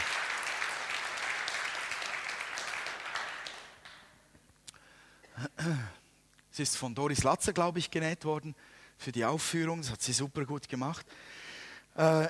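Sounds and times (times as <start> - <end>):
audience applause: 0.0 - 4.2
speech: 6.6 - 11.4, 12.0 - 12.2.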